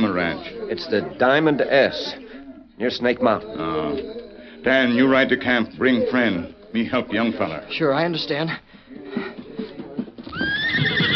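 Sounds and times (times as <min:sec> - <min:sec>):
speech: 0:00.0 - 0:02.2, 0:02.8 - 0:09.2
hoof clopping and shuffling: 0:09.0 - 0:11.1
horse neighing: 0:10.3 - 0:11.1.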